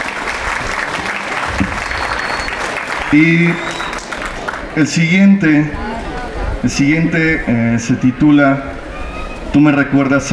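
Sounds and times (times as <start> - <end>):
audience applause: 0.0 - 4.9
speech: 3.1 - 3.7, 4.8 - 5.8, 6.6 - 8.8, 9.5 - 10.3.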